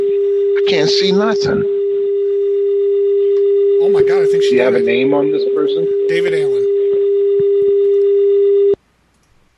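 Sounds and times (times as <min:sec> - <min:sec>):
phone ringtone during automatic redial: 0:00.0 - 0:08.8
speech: 0:00.7 - 0:01.7, 0:03.8 - 0:06.6.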